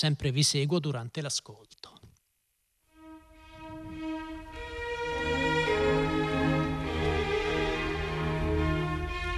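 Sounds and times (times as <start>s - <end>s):
speech: 0.0s - 2.0s
classical era orchestral symphony second movement: 3.0s - 9.3s.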